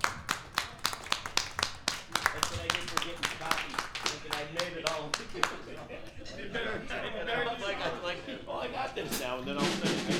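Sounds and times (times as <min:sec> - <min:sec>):
audience applause: 0:00.0 - 0:05.9
crowd chatter and murmuring voices: 0:00.0 - 0:10.1
laughter: 0:02.2 - 0:10.1.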